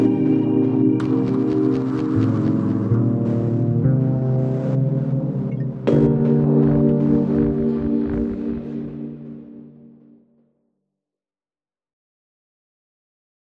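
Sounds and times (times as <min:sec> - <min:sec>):
submarine sounds: 0:00.0 - 0:09.9.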